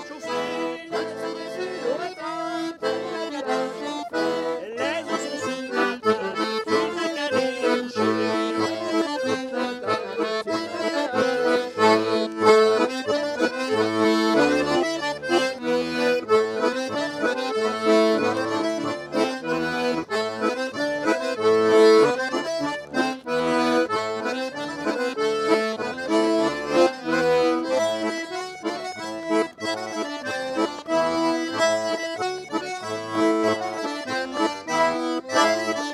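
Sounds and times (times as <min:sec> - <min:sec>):
accordion at a festival: 0:00.0 - 0:35.9.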